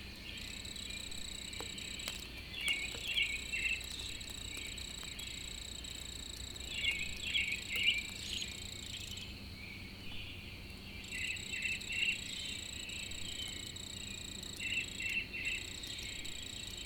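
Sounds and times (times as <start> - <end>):
lone cricket trilling in the early morning: 0.0 - 16.8.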